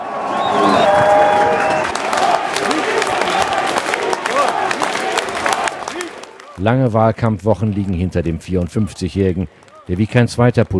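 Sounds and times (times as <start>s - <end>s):
large crowd cheering and applauding: 0.0s - 10.2s
people whistling: 0.3s - 1.9s
speech: 6.6s - 10.7s.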